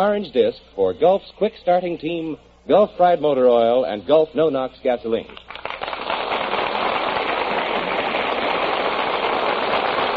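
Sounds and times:
speech: 0:00.0 - 0:05.6
studio audience applause: 0:05.4 - 0:10.1.

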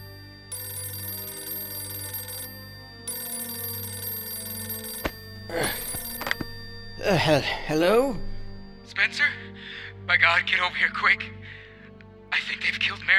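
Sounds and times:
telephone ringing: 0:00.0 - 0:08.9
speech: 0:07.1 - 0:08.3, 0:08.9 - 0:09.4, 0:10.1 - 0:11.4, 0:12.5 - 0:13.1.

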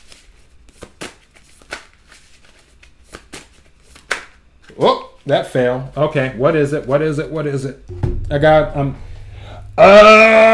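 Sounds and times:
tarot cards being shuffled and drawn by hand: 0:00.0 - 0:04.8
speech: 0:04.8 - 0:09.1, 0:09.8 - 0:10.5.

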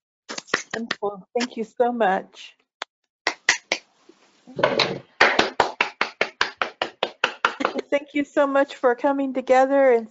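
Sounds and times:
speech: 0:00.8 - 0:02.6, 0:04.5 - 0:05.1, 0:07.9 - 0:10.0
audience applause: 0:04.6 - 0:07.8.

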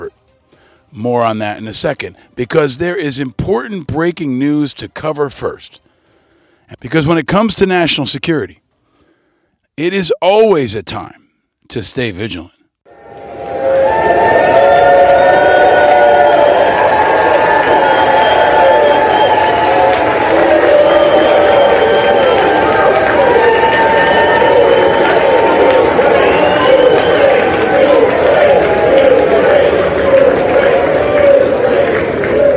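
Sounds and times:
speech: 0:00.9 - 0:05.8, 0:06.7 - 0:08.6, 0:09.8 - 0:12.6
cheering in the House of Representatives: 0:12.9 - 0:32.5.

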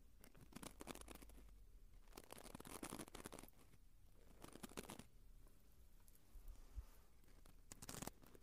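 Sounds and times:
ear cleaning crackling rustles and scratchy scrapes: 0:00.3 - 0:05.1, 0:07.2 - 0:08.3.

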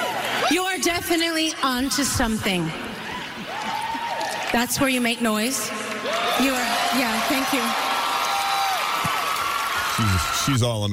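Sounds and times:
speech: 0:00.8 - 0:03.0, 0:04.5 - 0:07.9, 0:10.0 - 0:10.9
audience applause: 0:03.1 - 0:04.8, 0:05.8 - 0:10.8.

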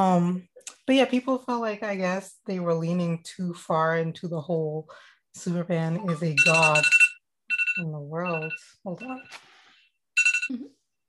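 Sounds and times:
speech: 0:00.0 - 0:07.0, 0:07.8 - 0:09.5, 0:10.5 - 0:10.8
phone alarm going off: 0:06.0 - 0:09.4, 0:10.2 - 0:10.7.

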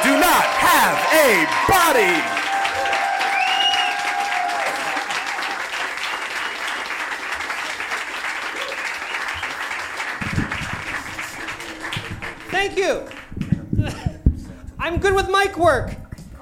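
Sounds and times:
crowd applauding: 0:00.0 - 0:14.0
speech: 0:00.8 - 0:02.4, 0:12.7 - 0:13.1, 0:15.0 - 0:16.0
whistles: 0:03.3 - 0:04.1, 0:06.3 - 0:06.8, 0:08.7 - 0:09.7.

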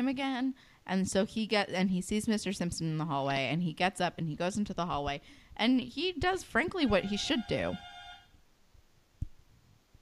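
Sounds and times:
speech: 0:00.0 - 0:07.9
apartment door buzzer: 0:06.9 - 0:08.3.

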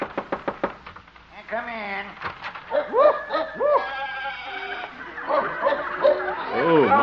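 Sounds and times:
speech: 0:01.5 - 0:03.6, 0:06.5 - 0:07.0
laughter: 0:02.9 - 0:07.0
goats and sheep bleating in a shed: 0:03.8 - 0:07.0.

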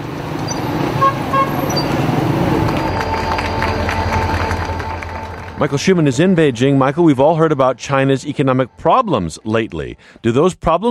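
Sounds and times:
freight train arriving: 0:00.0 - 0:09.4
train horn toots: 0:01.0 - 0:05.8
crowd murmur: 0:01.9 - 0:06.6
speech: 0:05.6 - 0:10.8.

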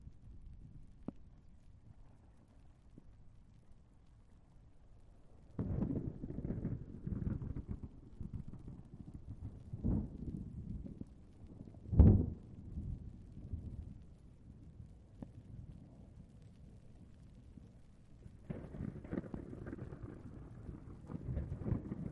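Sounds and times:
steady wash of heavy rain: 0:00.0 - 0:22.1
sharp loud thunder crack: 0:05.6 - 0:08.4, 0:18.5 - 0:22.1
low grumbling thunder in a rainstorm: 0:05.6 - 0:14.0, 0:18.3 - 0:22.1.

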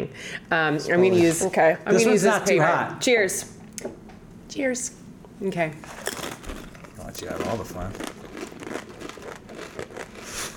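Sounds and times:
speech: 0:00.1 - 0:06.2, 0:07.2 - 0:08.2
crunching while eating: 0:05.9 - 0:10.5.

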